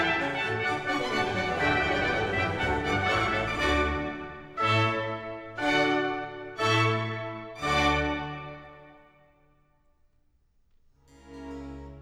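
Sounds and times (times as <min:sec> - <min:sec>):
baroque orchestral suite in D major: 0:00.0 - 0:09.4.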